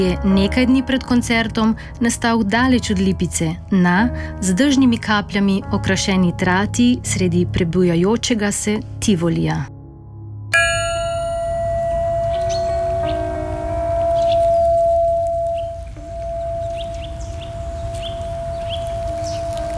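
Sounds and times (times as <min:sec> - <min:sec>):
speech: 0:00.0 - 0:09.7
large tuning fork struck outdoors: 0:10.5 - 0:19.7
birds chirping outdoors: 0:10.6 - 0:19.7.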